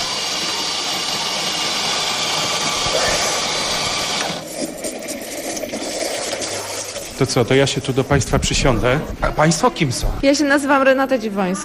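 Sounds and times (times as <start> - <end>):
espresso machine steam wand hissing while frothing milk: 0.0 - 4.5
speech: 7.2 - 11.6.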